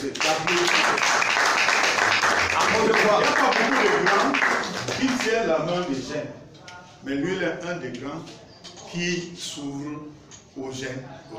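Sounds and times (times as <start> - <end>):
audience applause congratulating a performer: 0.0 - 5.3
speech: 5.2 - 11.3.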